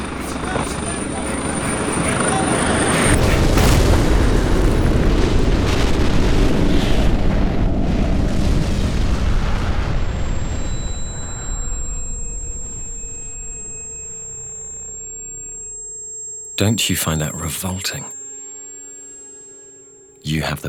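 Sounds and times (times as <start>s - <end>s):
roaring aircraft: 0.0s - 8.7s
bombing explosions: 0.0s - 12.1s
speech: 16.6s - 18.1s, 20.3s - 20.6s.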